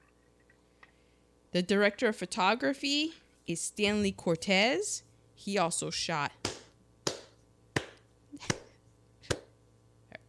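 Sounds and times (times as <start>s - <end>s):
speech: 1.5s - 6.4s
sparse hand claps: 6.4s - 9.5s.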